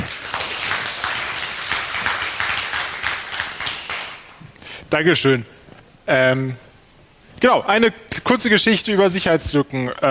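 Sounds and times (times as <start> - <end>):
audience applause: 0.0 - 4.4
speech: 4.9 - 6.6, 7.4 - 10.0.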